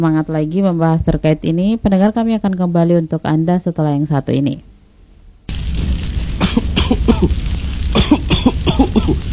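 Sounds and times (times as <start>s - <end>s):
speech: 0.0s - 4.7s, 6.9s - 7.5s
small child coughing from thick smoke of burning rubbish: 6.4s - 7.4s, 8.0s - 9.2s.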